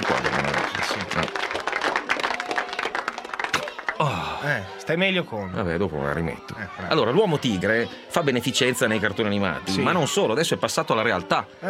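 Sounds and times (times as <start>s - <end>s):
applause: 0.0s - 4.5s
speech: 4.0s - 11.6s.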